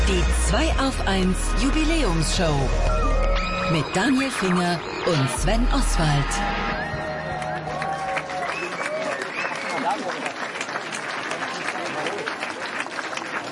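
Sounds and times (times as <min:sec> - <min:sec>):
speech: 0:00.1 - 0:03.1, 0:03.7 - 0:06.8
live audience clapping and applauding: 0:02.5 - 0:04.9, 0:06.8 - 0:13.5.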